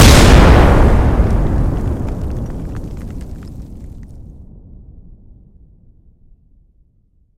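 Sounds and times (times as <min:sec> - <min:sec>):
sudden fierce explosion: 0:00.0 - 0:04.8.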